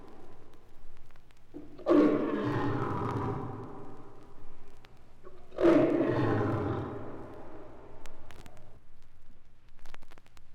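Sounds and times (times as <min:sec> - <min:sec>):
faint clicks: 0:00.0 - 0:10.5
lion's deep roar: 0:01.6 - 0:04.0, 0:05.3 - 0:07.7.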